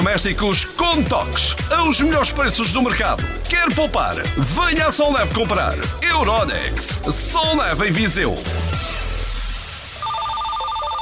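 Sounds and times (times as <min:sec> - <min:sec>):
speech: 0:00.1 - 0:09.0
noise: 0:08.3 - 0:11.0
telephone ringing for an incoming call with electronic trill: 0:10.0 - 0:11.0.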